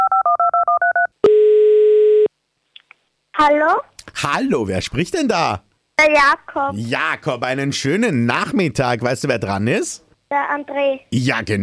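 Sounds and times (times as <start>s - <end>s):
loud steady phone tone: 0.0s - 2.3s
speech: 3.4s - 11.6s.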